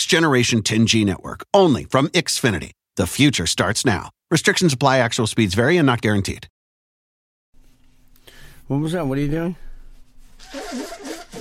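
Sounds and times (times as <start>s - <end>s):
speech: 0.0s - 6.5s, 8.7s - 9.7s
sneeze: 10.4s - 11.3s.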